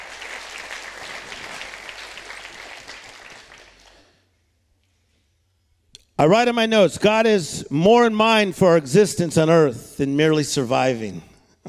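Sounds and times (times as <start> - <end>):
audience clapping hands: 0.0 - 4.2
speech: 6.2 - 11.6.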